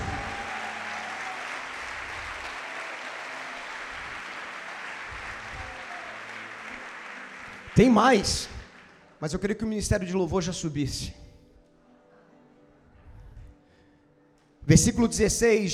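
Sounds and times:
audience applauding: 0.0s - 9.2s
speech: 7.8s - 8.6s, 9.2s - 11.2s, 14.7s - 15.7s.

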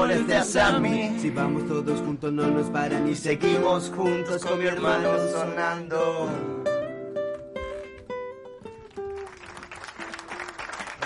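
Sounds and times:
speech: 0.0s - 6.8s
applause: 8.7s - 11.0s.

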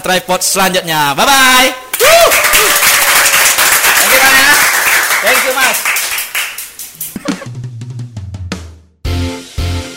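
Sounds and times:
speech: 0.0s - 3.0s, 5.2s - 6.0s
person whooping: 2.0s - 3.2s
crowd applause: 2.1s - 7.4s
laughter: 7.1s - 7.5s.

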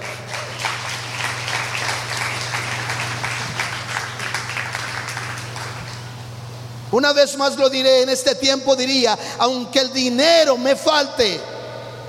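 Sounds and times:
audience applause: 0.0s - 6.1s
speech: 6.9s - 11.5s.

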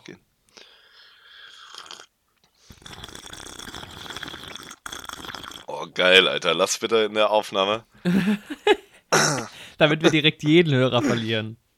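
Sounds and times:
speech: 0.1s - 0.3s, 6.0s - 11.6s
person slurping a drink: 1.4s - 5.8s
laughter: 8.1s - 8.8s.

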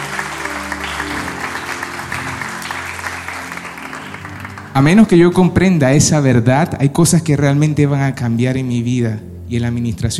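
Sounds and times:
audience applause: 0.0s - 5.2s
speech: 4.8s - 10.1s.

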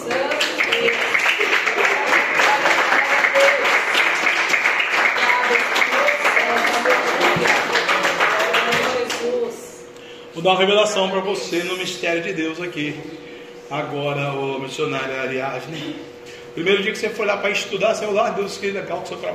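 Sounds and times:
audience applauding: 0.0s - 9.2s
speech: 10.4s - 19.3s.

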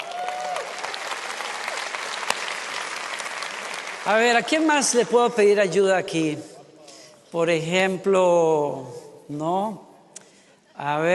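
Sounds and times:
audience applause: 0.0s - 4.8s
speech: 4.0s - 6.5s, 7.3s - 9.9s, 10.8s - 11.1s.

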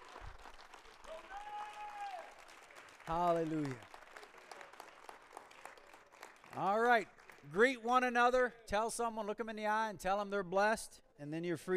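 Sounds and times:
audience applause: 0.0s - 7.5s
speech: 3.1s - 3.9s, 6.6s - 11.7s.

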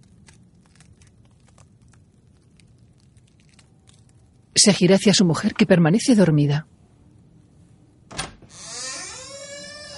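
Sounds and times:
speech: 4.6s - 6.8s
door opening: 8.1s - 9.9s.

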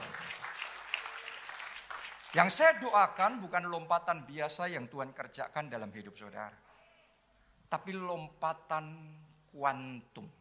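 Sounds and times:
crowd applause: 0.0s - 2.4s
speech: 2.3s - 6.6s, 7.7s - 10.3s.

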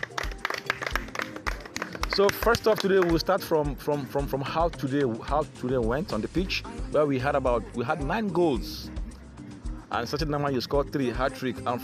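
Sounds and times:
group clapping: 0.0s - 3.5s
speech: 2.2s - 8.9s, 9.9s - 11.8s.

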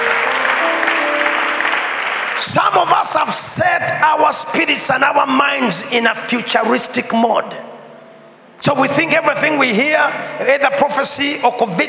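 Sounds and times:
audience clapping: 0.0s - 3.0s
speech: 2.4s - 7.7s, 8.6s - 11.8s.

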